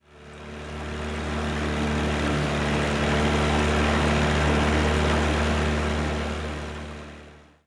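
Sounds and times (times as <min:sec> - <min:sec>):
boat: 0:00.0 - 0:07.6.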